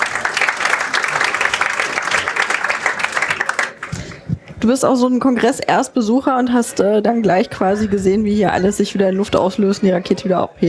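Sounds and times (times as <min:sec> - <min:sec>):
audience applause: 0:00.0 - 0:04.3
speech: 0:04.6 - 0:10.6.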